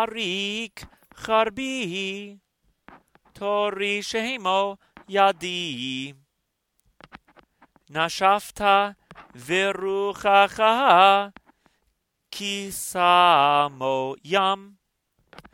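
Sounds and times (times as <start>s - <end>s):
Torah portion chanting: 0.0s - 2.4s, 3.3s - 6.2s, 7.9s - 11.4s, 12.3s - 14.8s.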